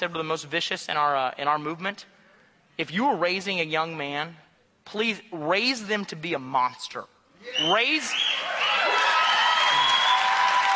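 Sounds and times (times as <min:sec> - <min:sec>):
speech: 0:00.0 - 0:02.2, 0:02.8 - 0:08.5
crowd whooping and cheering for a speaker: 0:07.5 - 0:10.7.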